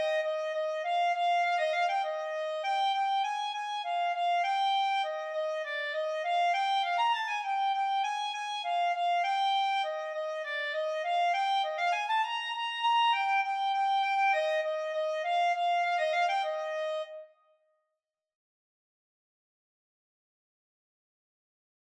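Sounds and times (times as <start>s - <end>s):
clarinet duet playing allegro: 0.0s - 17.3s.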